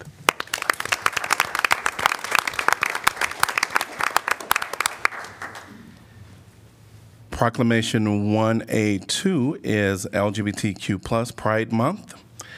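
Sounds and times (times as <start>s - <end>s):
audience hand clapping: 0.0s - 5.8s
speech: 7.4s - 12.2s.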